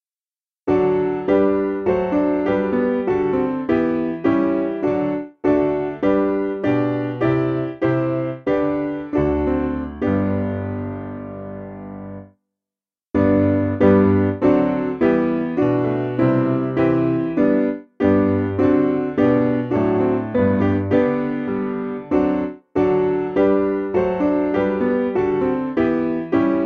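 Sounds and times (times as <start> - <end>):
piano: 0.7 - 12.4, 13.1 - 26.6.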